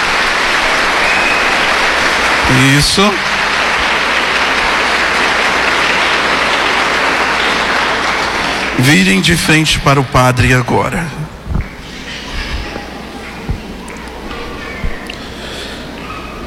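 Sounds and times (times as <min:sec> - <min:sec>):
audience applause for church initiates: 0:00.0 - 0:10.8
speech: 0:02.5 - 0:03.4, 0:08.8 - 0:11.2.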